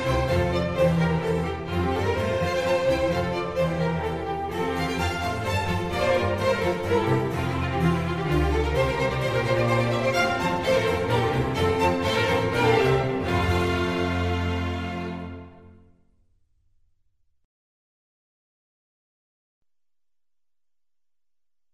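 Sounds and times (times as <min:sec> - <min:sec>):
strings concerto in F minor: 0:00.0 - 0:15.8.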